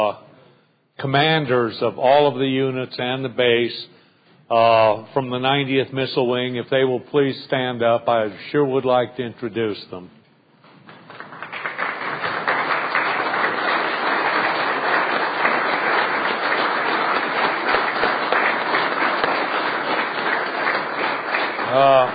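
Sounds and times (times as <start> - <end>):
speech: 0.0 - 0.2, 1.0 - 10.2, 21.8 - 22.1
audience applause: 10.9 - 22.1.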